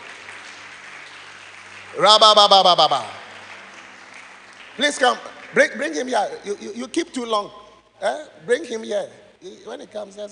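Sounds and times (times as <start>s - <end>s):
audience clapping: 0.0s - 7.5s
speech: 1.9s - 3.2s, 4.8s - 10.3s.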